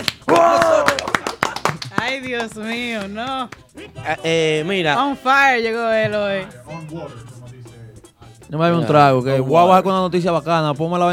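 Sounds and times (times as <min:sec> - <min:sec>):
few people clapping in the studio: 0:00.0 - 0:03.9
person letting out a drawn-out cheer: 0:00.2 - 0:01.7
speech: 0:02.1 - 0:07.3, 0:08.5 - 0:11.1.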